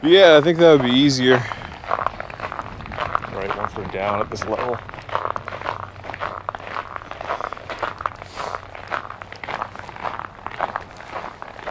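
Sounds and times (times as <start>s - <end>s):
speech: 0.0s - 1.6s, 3.4s - 5.1s
footsteps of people walking along a river: 0.3s - 11.6s.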